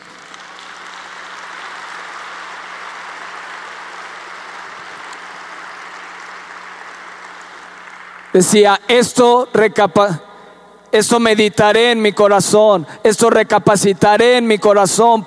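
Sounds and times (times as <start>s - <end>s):
audience applauding: 0.0s - 8.4s
speech: 8.4s - 10.2s, 10.9s - 15.2s.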